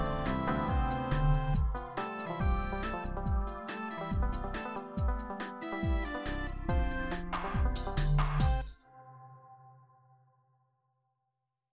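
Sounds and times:
jazz music: 0.0 - 8.6.

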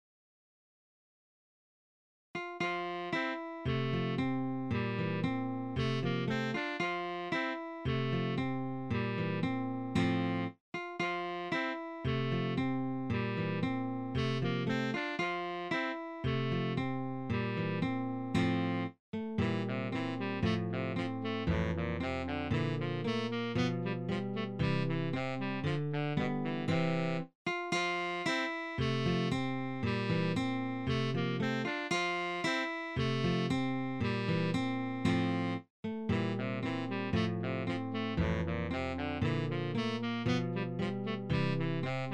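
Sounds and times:
allegretto in C major: 2.6 - 42.1.

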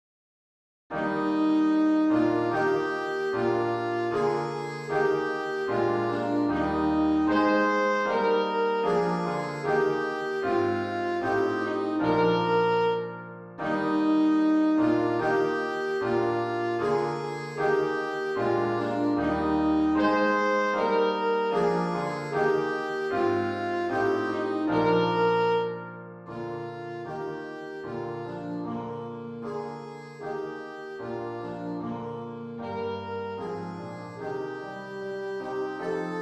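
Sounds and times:
national anthem music: 1.0 - 36.1.

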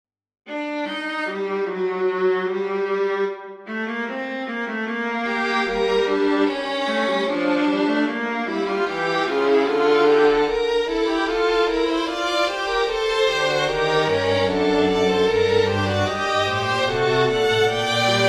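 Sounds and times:
string quartet playing minor fugue: 0.5 - 18.2.

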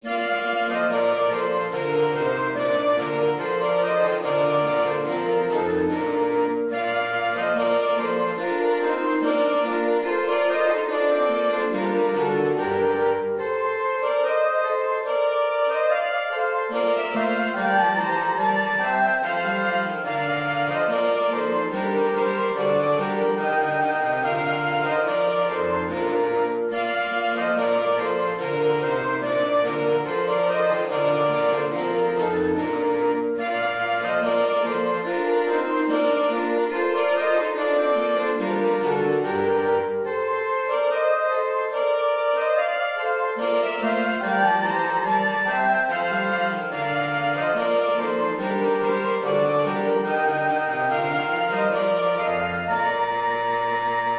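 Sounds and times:
christmas carol: 0.0 - 54.1.

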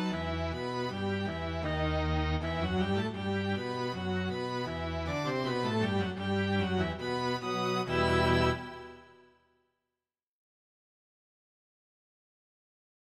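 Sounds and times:
chromatic canon music: 0.0 - 9.3.

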